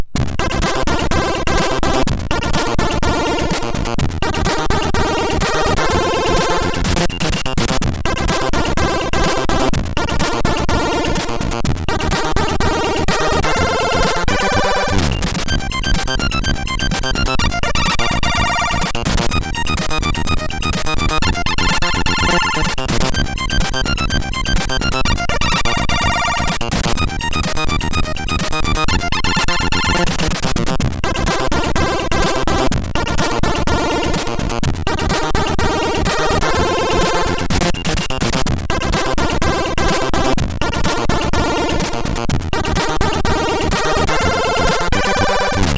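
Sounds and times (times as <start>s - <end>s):
MOS6581R4 SID chip music: 0.1s - 45.7s.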